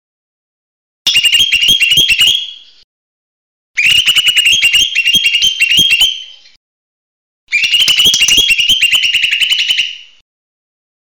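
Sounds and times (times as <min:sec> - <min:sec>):
buzzy chattering bird song: 0:01.1 - 0:02.9, 0:03.8 - 0:06.6, 0:07.6 - 0:10.0.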